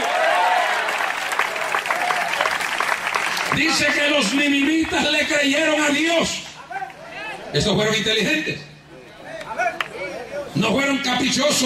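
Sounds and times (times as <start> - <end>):
audience applause: 0.0 - 5.3
speech: 3.6 - 6.4, 7.5 - 8.7, 10.6 - 11.6.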